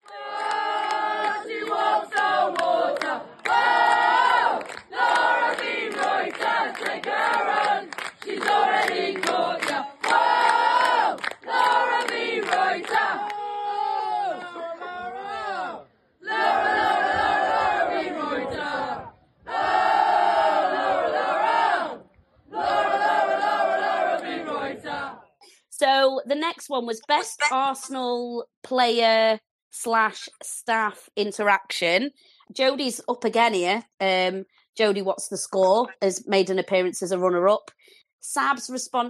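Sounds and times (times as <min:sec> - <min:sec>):
football crowd singing a chant in unison: 0:00.0 - 0:25.4
speech: 0:26.7 - 0:39.0.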